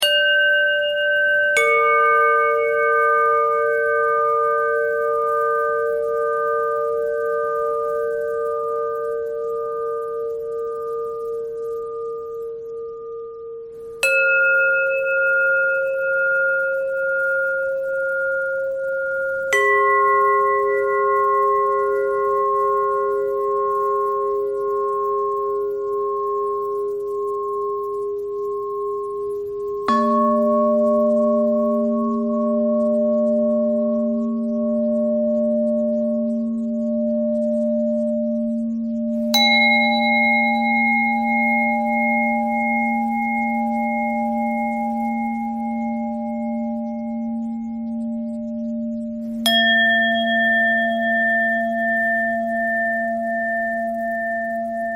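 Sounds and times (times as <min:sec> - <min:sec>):
bell: 0:00.0 - 0:54.9.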